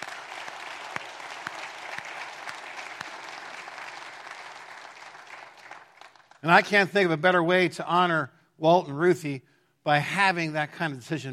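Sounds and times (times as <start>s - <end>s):
audience applause: 0.0s - 6.4s
speech: 6.4s - 11.3s.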